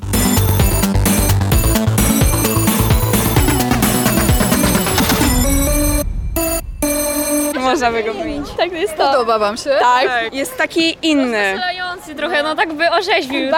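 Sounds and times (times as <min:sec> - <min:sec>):
musical school bell signal: 0:00.1 - 0:07.7
speech: 0:07.8 - 0:13.5.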